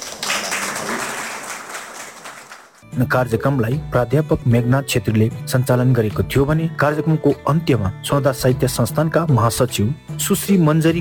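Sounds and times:
audience applause at a literary felicitation ceremony: 0.0s - 2.8s
speech: 3.0s - 10.9s.

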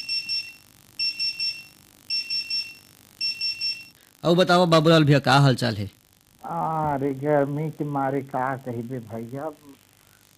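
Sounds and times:
phone ringing: 0.0s - 4.0s
speech: 4.2s - 9.8s.

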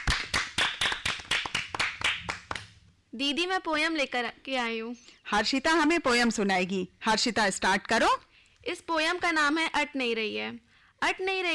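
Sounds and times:
applause: 0.0s - 2.8s
speech: 3.1s - 11.5s.

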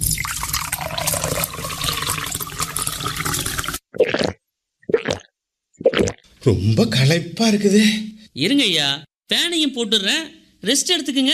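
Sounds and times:
chilled buttermilk poured into a glass: 0.0s - 4.4s
speech: 6.4s - 11.3s.

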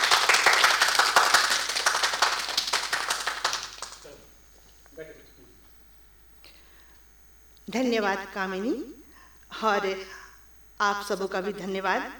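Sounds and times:
audience applause: 0.0s - 4.2s
speech: 7.7s - 9.0s, 9.6s - 10.2s, 10.8s - 12.1s.

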